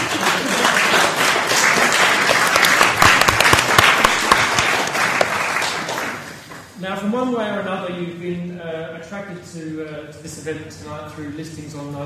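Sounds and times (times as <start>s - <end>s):
audience applause: 0.0s - 6.7s
speech: 7.1s - 12.0s.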